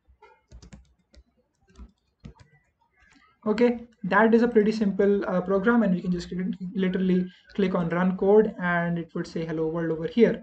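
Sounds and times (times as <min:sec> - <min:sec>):
code typed on a computer keyboard: 0:00.1 - 0:03.3
speech: 0:03.4 - 0:10.4.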